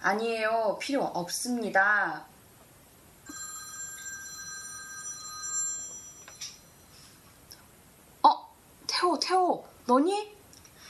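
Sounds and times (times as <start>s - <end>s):
speech: 0.0s - 2.3s, 9.0s - 10.4s
telephone ringing: 3.2s - 7.0s.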